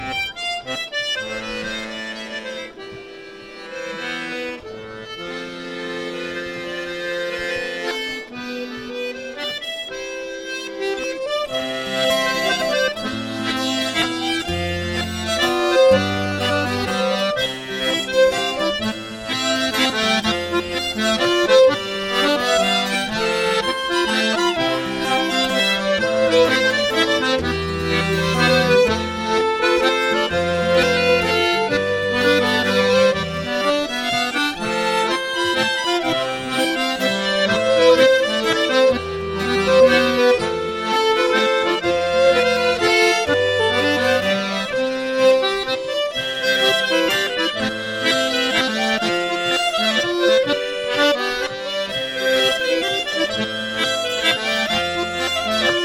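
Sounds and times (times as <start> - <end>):
mazurka: 0.0 - 55.8.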